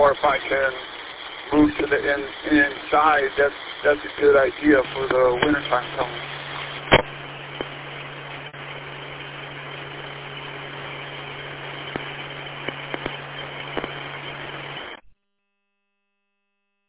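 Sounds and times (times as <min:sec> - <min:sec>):
speech: 0:00.0 - 0:07.0
car engine hum inside a car: 0:04.2 - 0:14.9
sharp click: 0:11.9 - 0:13.2.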